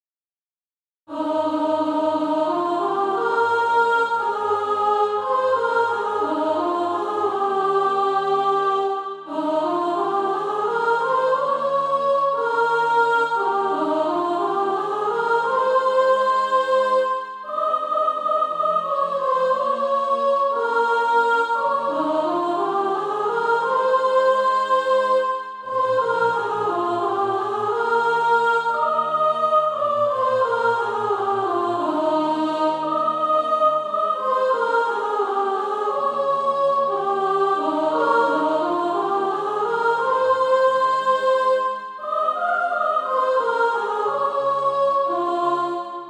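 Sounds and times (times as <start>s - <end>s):
soprano singing: 1.1s - 46.0s.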